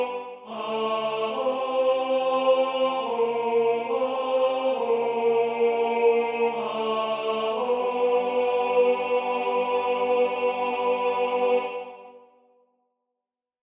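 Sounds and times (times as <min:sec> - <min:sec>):
tenor singing: 0:00.0 - 0:12.2.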